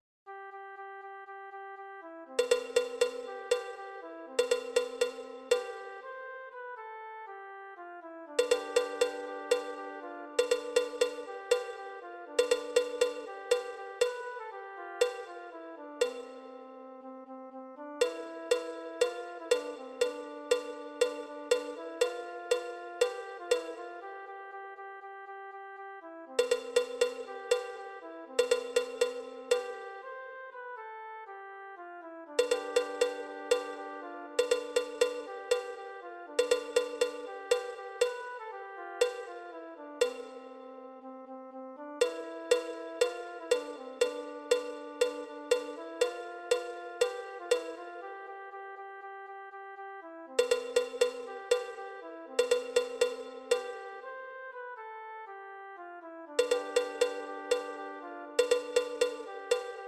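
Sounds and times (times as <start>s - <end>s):
percussion: 2.4s - 6.2s, 8.4s - 16.6s, 18.0s - 24.2s, 26.4s - 30.1s, 32.4s - 40.6s, 42.0s - 48.2s, 50.4s - 54.1s, 56.4s - 59.8s.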